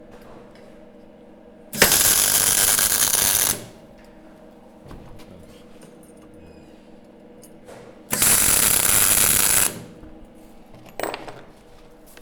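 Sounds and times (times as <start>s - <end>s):
welding metal: 1.8s - 3.8s, 8.1s - 9.9s.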